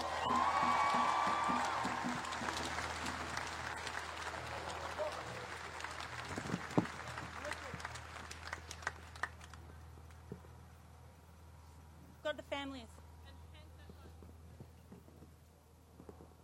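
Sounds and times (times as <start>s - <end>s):
audience applause: 0.0s - 9.6s.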